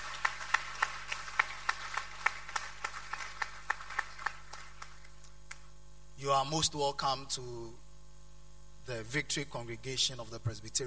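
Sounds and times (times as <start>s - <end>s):
audience clapping: 0.0s - 5.7s
speech: 6.2s - 7.8s, 8.8s - 10.8s.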